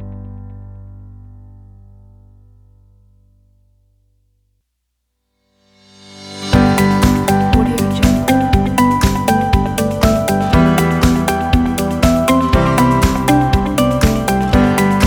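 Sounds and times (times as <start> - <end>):
upbeat emotional corporate background music: 6.5 - 15.0.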